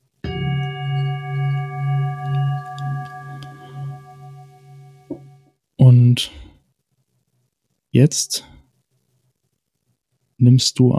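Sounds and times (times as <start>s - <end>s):
singing bowl struck and ringing: 0.2s - 5.6s
speech: 5.8s - 6.4s, 8.0s - 8.5s, 10.4s - 10.9s.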